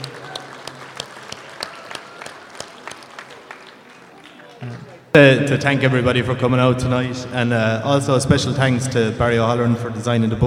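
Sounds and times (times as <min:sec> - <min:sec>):
crowd applauding with many hands clapping: 0:00.0 - 0:05.1
speech: 0:04.6 - 0:10.4.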